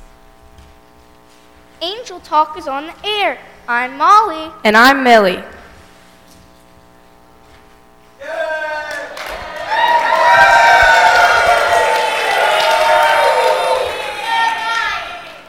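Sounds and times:
speech: 1.8 - 5.5
live audience cheering and whooping: 8.2 - 15.4.

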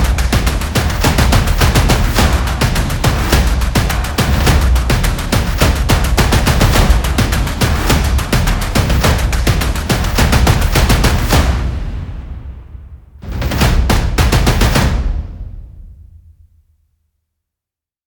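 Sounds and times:
drummers playing percussion drums: 0.0 - 12.0, 13.2 - 15.1.

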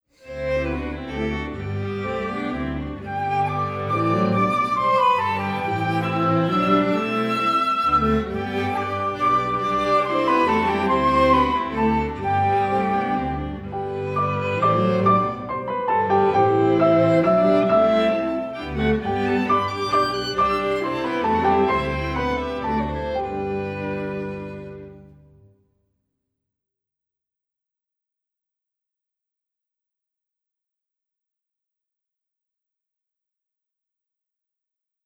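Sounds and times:
ballet exam music for battements tendus: 0.4 - 25.3.

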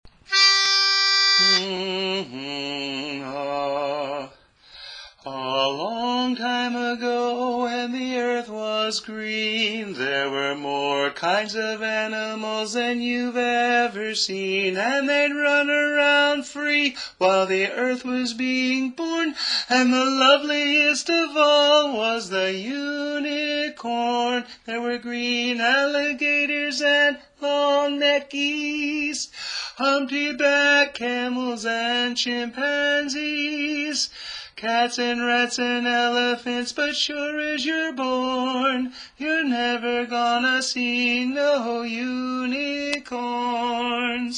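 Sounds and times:
tenor singing: 0.3 - 4.4, 5.2 - 44.3.

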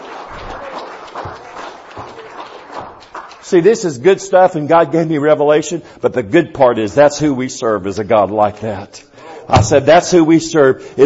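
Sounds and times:
audience hand clapping: 0.0 - 4.0
speech: 3.5 - 11.0.

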